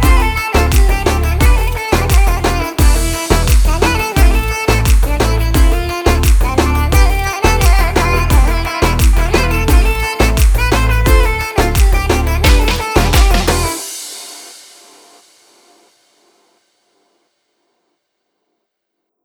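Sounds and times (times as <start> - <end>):
arabesk oryantal music: 0.0 - 15.1.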